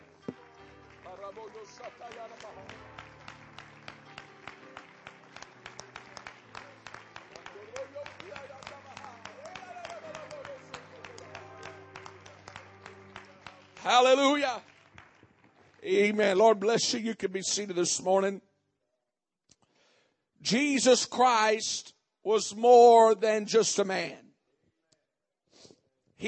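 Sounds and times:
audience clapping hands: 0:00.0 - 0:16.7
speech: 0:01.3 - 0:03.1, 0:13.8 - 0:14.7, 0:15.8 - 0:18.5, 0:20.5 - 0:24.2.

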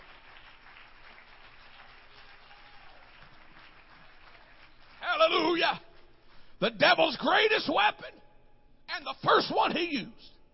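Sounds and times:
audience clapping hands: 0:00.0 - 0:06.4
speech: 0:05.6 - 0:05.9, 0:06.6 - 0:08.2, 0:09.0 - 0:10.4.

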